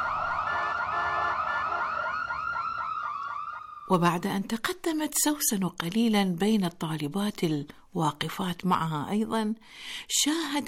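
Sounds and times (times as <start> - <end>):
ambulance siren: 0.0 - 4.0
speech: 3.9 - 10.6.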